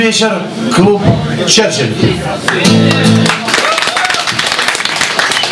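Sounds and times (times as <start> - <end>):
speech: 0.2 - 3.2
audience applause: 2.5 - 5.4.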